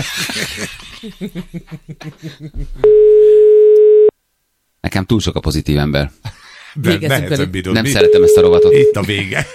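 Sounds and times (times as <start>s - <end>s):
laughter-like bursts: 0.0s - 2.8s
speech: 0.0s - 3.9s, 4.9s - 9.5s
steady electronic tone of an unanswered telephone call: 2.8s - 4.1s, 8.0s - 9.0s.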